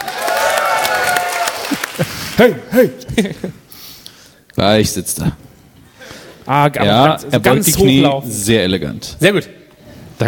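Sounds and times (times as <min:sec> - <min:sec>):
audience applause: 0:00.0 - 0:02.4
laughter: 0:01.6 - 0:03.7
speech: 0:02.0 - 0:03.6, 0:04.6 - 0:05.4, 0:06.5 - 0:09.6.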